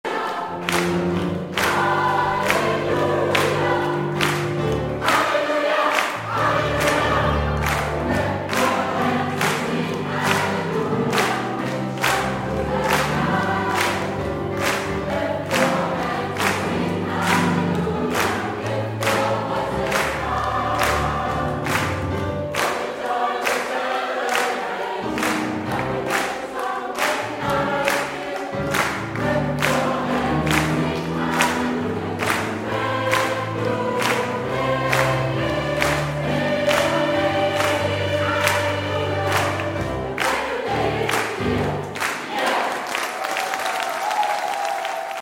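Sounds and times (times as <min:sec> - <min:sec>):
hands clapping: 0:00.1 - 0:45.1.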